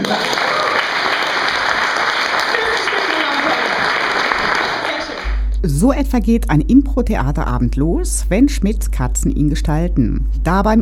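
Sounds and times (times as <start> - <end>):
audience applause at improv theatre: 0.0 - 5.4
speech: 5.7 - 10.7.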